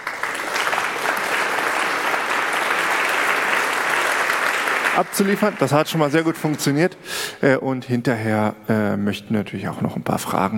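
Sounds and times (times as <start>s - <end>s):
applause: 0.0s - 6.8s
speech: 5.0s - 10.5s.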